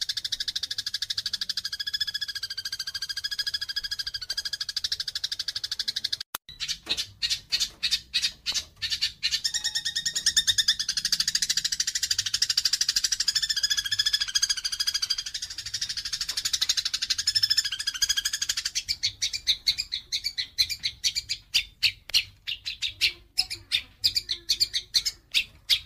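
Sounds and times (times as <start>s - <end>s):
Eurasian tree sparrow giving fast buzzy chatter and sharp chirps: 0.0s - 25.8s.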